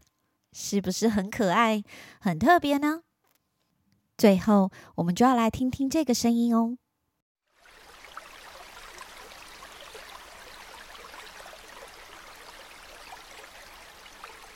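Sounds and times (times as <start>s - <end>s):
speech: 0.6s - 3.1s, 4.2s - 6.8s
flowing river water: 7.5s - 14.5s.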